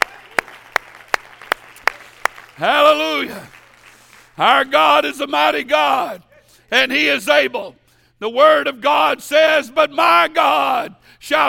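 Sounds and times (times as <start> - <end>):
audience clapping hands: 0.0 - 4.7
speech: 2.6 - 3.6, 4.4 - 11.4.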